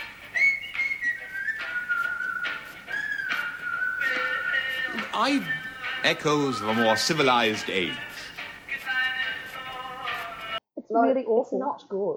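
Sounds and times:
person whistling a tune in imitation of old gramophone music: 0:00.3 - 0:06.9
speech: 0:05.2 - 0:08.1, 0:11.0 - 0:12.1.

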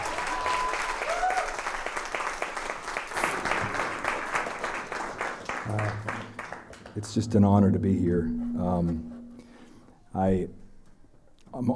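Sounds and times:
whoops and voices: 0:00.0 - 0:01.6
audience round of applause: 0:00.0 - 0:07.0
speech: 0:07.0 - 0:09.1, 0:10.2 - 0:10.6.

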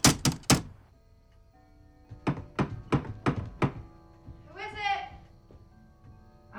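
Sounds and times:
knock on a door: 0:00.0 - 0:00.8, 0:02.1 - 0:06.2.

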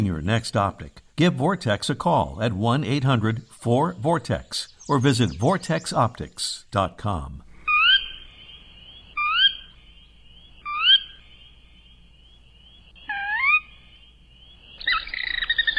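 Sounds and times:
speech: 0:00.0 - 0:07.4
Sora whistled calls: 0:03.4 - 0:06.0, 0:07.5 - 0:15.7.

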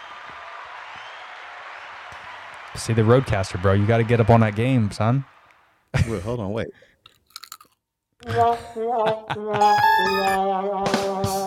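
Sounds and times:
applause sound effect: 0:00.0 - 0:05.7
speech: 0:02.7 - 0:05.3, 0:05.9 - 0:06.9, 0:08.2 - 0:11.4.

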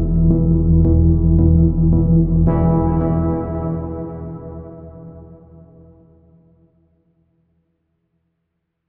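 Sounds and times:
vintage synthesizer: 0:00.0 - 0:06.8.

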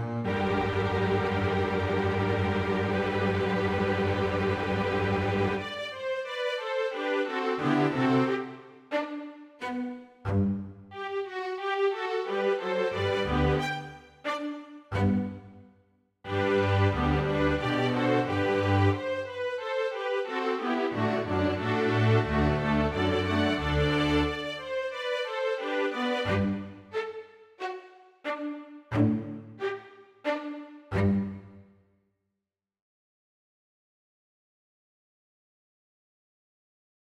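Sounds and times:
full string ensemble: 0:00.0 - 0:15.6, 0:16.3 - 0:31.6.

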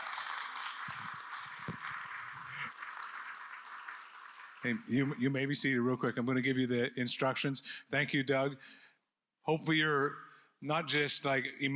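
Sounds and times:
audience clapping: 0:00.0 - 0:05.3
speech: 0:04.6 - 0:08.8, 0:09.5 - 0:11.7.

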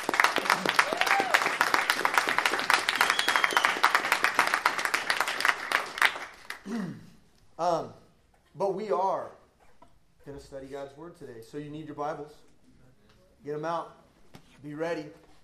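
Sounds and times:
audience applause: 0:00.0 - 0:06.6
scattered whoops: 0:00.7 - 0:01.6
speech: 0:07.6 - 0:08.0, 0:08.6 - 0:09.4, 0:10.3 - 0:12.5, 0:13.4 - 0:14.0, 0:14.6 - 0:15.2.

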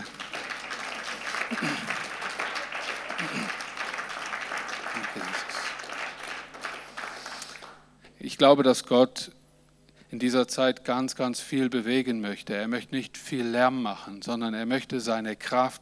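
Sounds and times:
audience applauding: 0:00.0 - 0:07.8
speech: 0:01.5 - 0:01.9, 0:08.4 - 0:09.4, 0:10.1 - 0:15.8.

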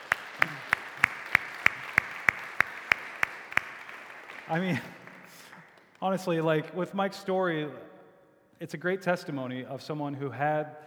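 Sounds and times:
audience applause: 0:00.0 - 0:06.4
speech: 0:04.5 - 0:05.0, 0:06.0 - 0:07.9, 0:08.6 - 0:10.8.

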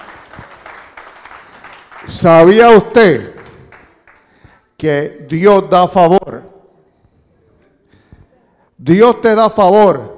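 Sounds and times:
crowd clapping hands: 0:00.0 - 0:04.6
speech: 0:02.1 - 0:03.3, 0:04.8 - 0:06.2, 0:08.9 - 0:10.1.

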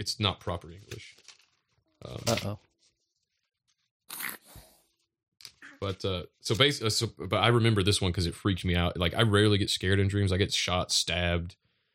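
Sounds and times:
speech: 0:00.0 - 0:01.2, 0:02.0 - 0:02.7, 0:05.8 - 0:11.6
journal paper and cover crunching and rustling: 0:00.4 - 0:03.8.

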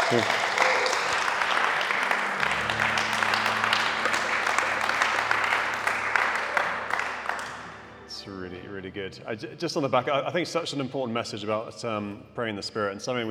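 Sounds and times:
audience applause: 0:00.0 - 0:08.1
speech: 0:00.1 - 0:00.4, 0:09.0 - 0:13.2.

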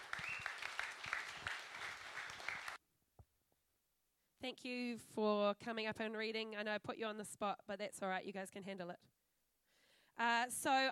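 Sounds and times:
audience applause: 0:00.0 - 0:02.8
speech: 0:04.4 - 0:09.2, 0:10.2 - 0:10.8.

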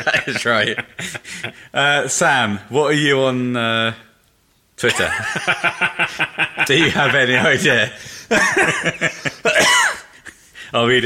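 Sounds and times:
laughter: 0:00.0 - 0:01.7, 0:04.9 - 0:09.6
speech: 0:00.0 - 0:04.1, 0:04.8 - 0:09.6, 0:10.7 - 0:11.0
person coughing: 0:09.5 - 0:10.1.

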